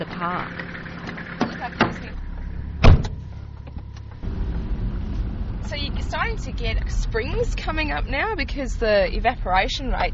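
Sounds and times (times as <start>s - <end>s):
speech: 0.0s - 0.6s, 6.2s - 10.1s
car driving down into a valley in a Central Australian park: 0.0s - 10.1s
sharp clunks: 2.8s - 4.2s.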